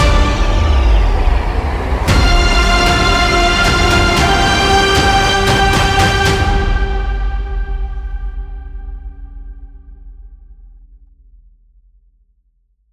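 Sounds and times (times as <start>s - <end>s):
uplifting motivational epic cinematic trailer music: 0.0s - 9.6s.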